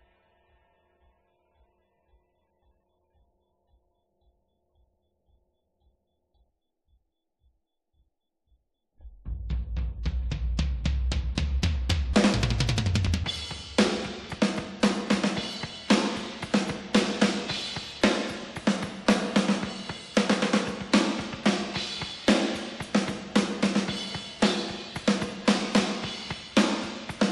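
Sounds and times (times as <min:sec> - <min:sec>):
snare drum: 0:10.1 - 0:27.2.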